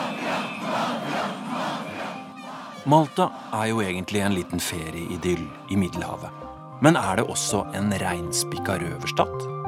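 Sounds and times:
protesting crowd shouting in the streets: 0.0 - 6.2
speech: 2.8 - 9.5.

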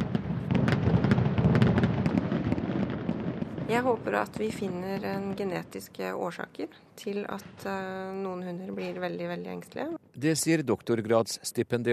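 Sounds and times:
fireworks exploding: 0.0 - 6.2, 7.2 - 9.8
speech: 3.7 - 11.9.

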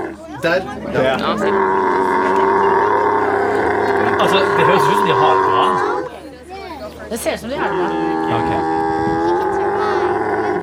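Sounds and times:
speech: 0.4 - 2.4, 4.2 - 5.9, 7.1 - 8.8
camel screaming: 1.2 - 6.1, 7.6 - 10.6.

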